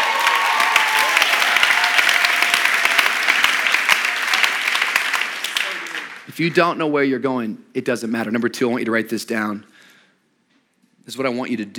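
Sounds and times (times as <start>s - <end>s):
audience clapping: 0.0s - 6.8s
speech: 6.4s - 9.7s, 11.1s - 11.7s.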